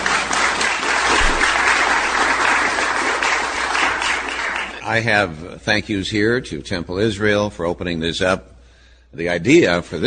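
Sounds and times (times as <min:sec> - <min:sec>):
audience applause: 0:00.0 - 0:04.8
speech: 0:04.9 - 0:08.5, 0:09.1 - 0:10.0.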